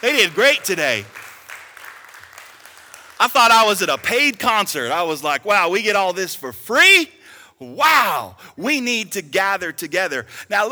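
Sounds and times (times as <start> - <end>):
speech: 0.0 - 1.2, 3.2 - 10.7
applause for worship team: 0.0 - 4.8.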